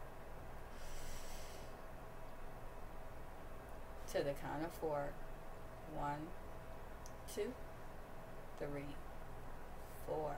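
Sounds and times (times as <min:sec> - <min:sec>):
low rumble: 0:00.0 - 0:10.3
person breathing in deeply during a mindfulness break: 0:00.7 - 0:01.8
speech: 0:04.1 - 0:05.3, 0:05.9 - 0:06.5, 0:07.3 - 0:07.7, 0:08.6 - 0:09.0, 0:10.1 - 0:10.3.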